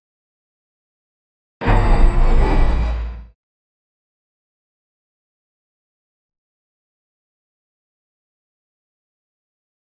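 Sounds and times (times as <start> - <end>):
operating system startup sound: 1.6 - 3.2.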